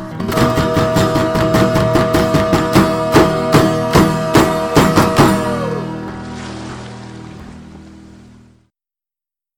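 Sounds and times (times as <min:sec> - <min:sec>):
person singing a pirate shanty karaoke: 0:00.3 - 0:05.9.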